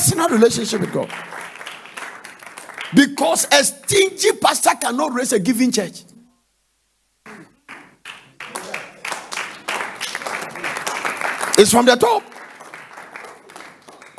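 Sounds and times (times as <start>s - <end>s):
audience clapping: 0.0s - 4.3s, 7.2s - 14.1s
speech: 0.1s - 1.4s, 2.9s - 6.1s, 11.6s - 12.3s.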